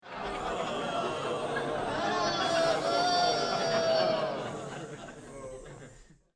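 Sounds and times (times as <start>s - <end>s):
laughter: 0.0s - 6.3s
person booing: 1.9s - 4.7s.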